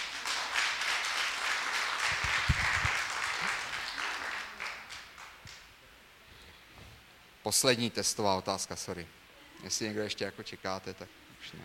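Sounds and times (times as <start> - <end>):
applause: 0.0 - 5.6
speech: 7.5 - 11.6.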